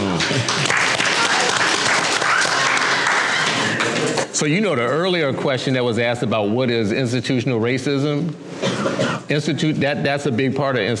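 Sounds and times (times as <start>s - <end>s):
crowd clapping: 0.0s - 4.3s
speech: 4.4s - 10.9s.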